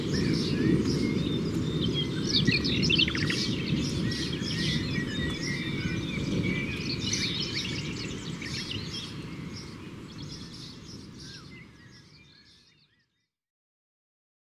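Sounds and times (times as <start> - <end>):
approaching thunderstorm in Ardeche: 0.0 - 11.4.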